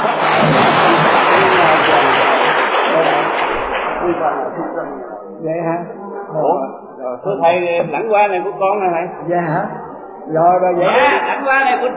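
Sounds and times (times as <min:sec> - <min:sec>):
group of people clapping: 0:00.0 - 0:04.9
speech: 0:04.2 - 0:11.9.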